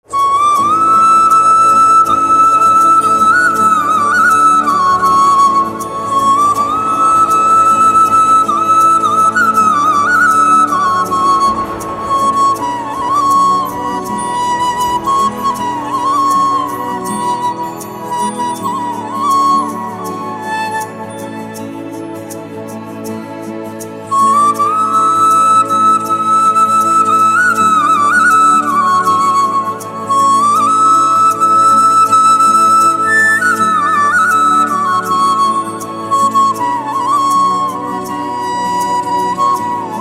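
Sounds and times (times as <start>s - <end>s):
flute: 0.0s - 39.9s.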